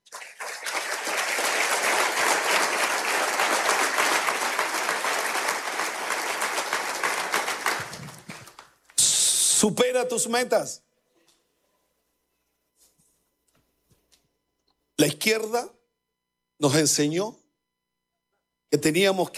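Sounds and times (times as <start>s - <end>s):
audience applause: 0.0s - 8.8s
speech: 9.6s - 10.9s, 15.2s - 15.8s, 16.6s - 17.4s, 18.7s - 19.3s.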